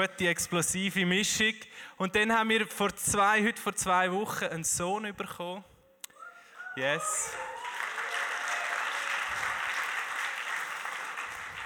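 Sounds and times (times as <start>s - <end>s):
speech: 0.0s - 5.7s, 6.8s - 7.5s
audience applause: 7.0s - 11.6s.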